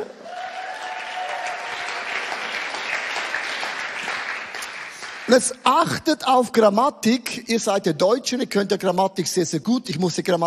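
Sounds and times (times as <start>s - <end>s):
audience clapping: 0.0s - 5.9s
speech: 5.3s - 10.4s.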